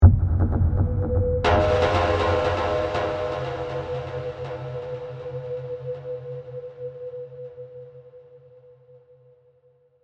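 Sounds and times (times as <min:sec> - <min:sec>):
eerie percussion musical accent: 0:00.0 - 0:07.6.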